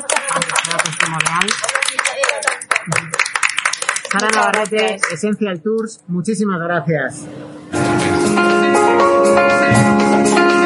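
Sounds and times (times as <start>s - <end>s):
audience applause: 0.0s - 5.2s
speech: 0.6s - 1.8s, 2.8s - 3.3s, 4.1s - 10.5s.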